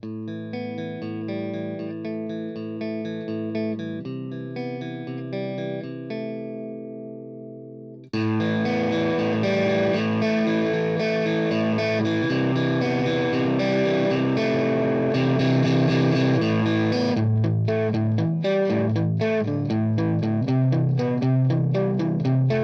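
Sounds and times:
distortion pedal effect loop: 0:00.0 - 0:22.6.

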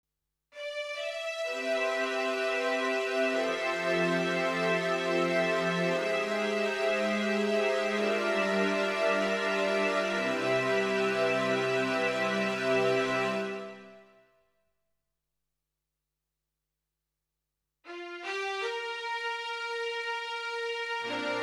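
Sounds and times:
strings: 0:00.6 - 0:14.0, 0:17.9 - 0:21.4.

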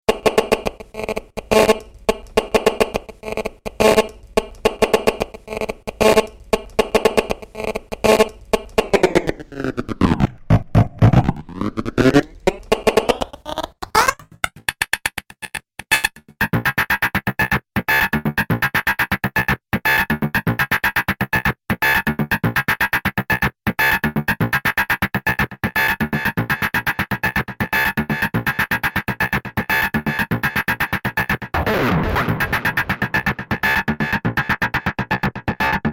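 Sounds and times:
mobile phone interference noise slice loop: 0:00.1 - 0:24.0, 0:24.6 - 0:35.8.

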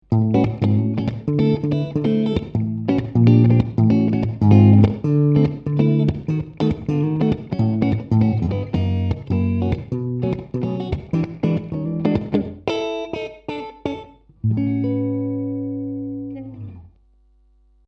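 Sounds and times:
electric guitar on both pickups: 0:00.0 - 0:17.0.

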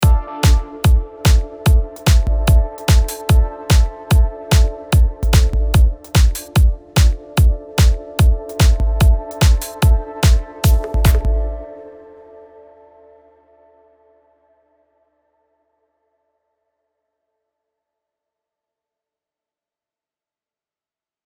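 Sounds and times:
dry synth pad loop: 0:00.0 - 0:12.9.

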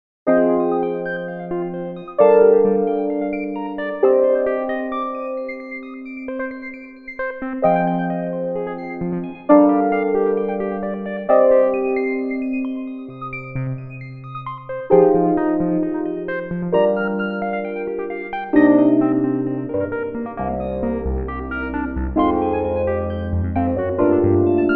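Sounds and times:
Nord Stage 3 electric piano arpeggiator: 0:00.3 - 0:24.7.

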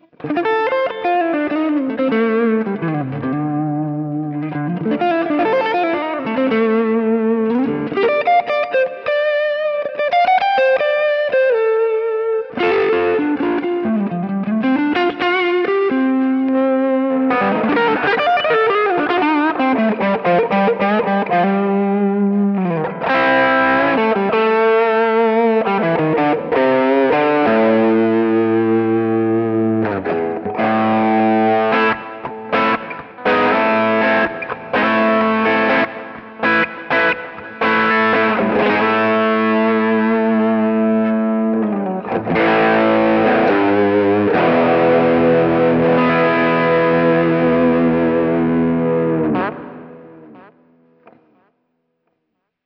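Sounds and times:
guitar through Spruce Goose overdrive: 0:00.0 - 0:52.2.

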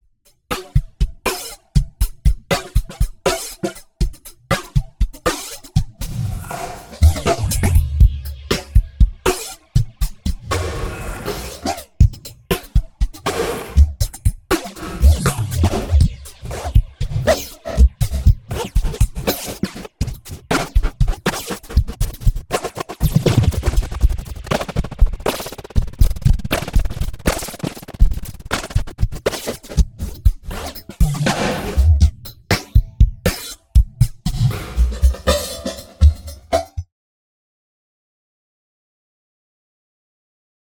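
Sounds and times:
drums with rotating effect: 0:00.5 - 0:36.9.

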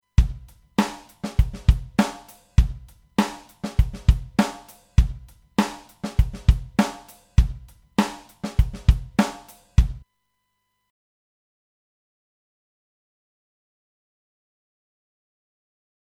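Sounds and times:
drums: 0:00.0 - 0:10.1.

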